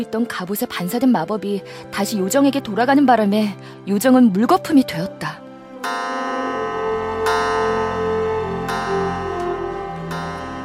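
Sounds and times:
speech: 0.0 - 5.4
clock bell striking midnight: 5.8 - 10.6.

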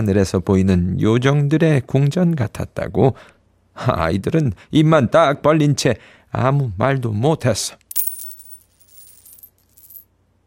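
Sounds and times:
speech: 0.0 - 7.8
gold coin dropping and rolling: 7.9 - 10.1.

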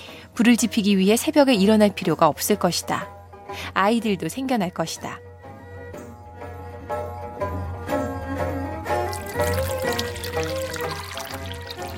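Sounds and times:
speech: 0.4 - 5.3
water pouring into a bowl: 9.0 - 11.9.

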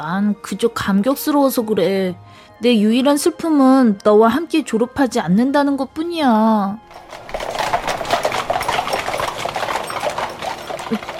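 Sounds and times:
speech: 0.0 - 7.3, 10.9 - 11.1
carriage wheels rattling: 6.9 - 11.1.

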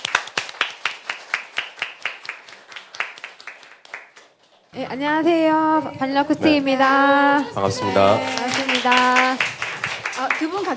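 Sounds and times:
audience clapping: 0.0 - 4.7, 7.5 - 10.7
speech: 4.7 - 9.5, 10.4 - 10.7.

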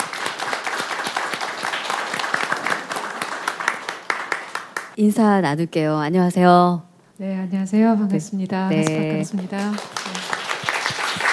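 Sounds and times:
audience applause welcoming a guest singer: 0.0 - 5.0, 8.7 - 11.3
speech: 5.0 - 10.0.

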